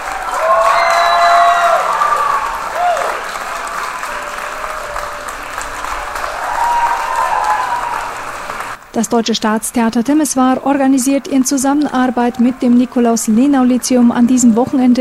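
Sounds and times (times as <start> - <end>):
audience applause after theater performance: 0.0 - 8.8
speech: 9.0 - 14.9.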